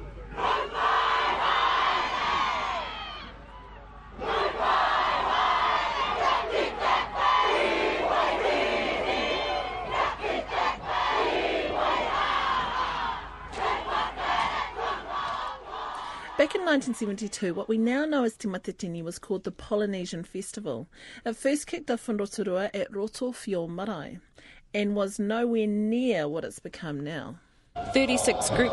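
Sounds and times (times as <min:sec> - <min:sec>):
home crowd chanting a challenge in a wero face-off: 0:00.0 - 0:17.6, 0:27.8 - 0:28.7
speech: 0:16.7 - 0:28.7.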